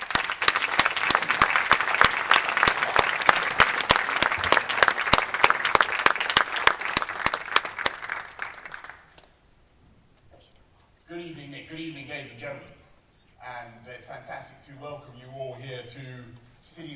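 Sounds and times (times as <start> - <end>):
audience applause: 0.0 - 9.2.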